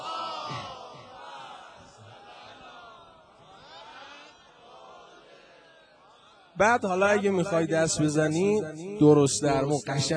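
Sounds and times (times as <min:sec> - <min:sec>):
crowd reciting salavat, an Islamic blessing, at a gathering: 0:00.0 - 0:06.6
speech: 0:06.6 - 0:10.1.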